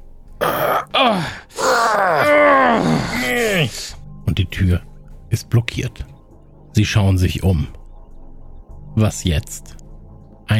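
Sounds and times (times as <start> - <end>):
straining groans while pushing a heavy cupboard: 0.4 - 4.0
speech: 1.0 - 1.4, 4.5 - 6.1, 6.8 - 7.8, 9.0 - 9.8.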